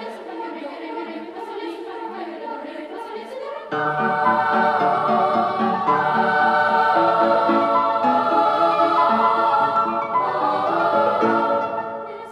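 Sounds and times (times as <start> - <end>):
Italian polka music: 3.7 - 12.2.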